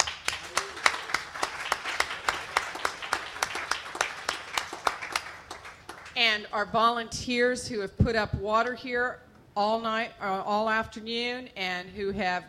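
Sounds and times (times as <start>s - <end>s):
audience applause: 0.0s - 6.2s
speech: 6.4s - 12.4s.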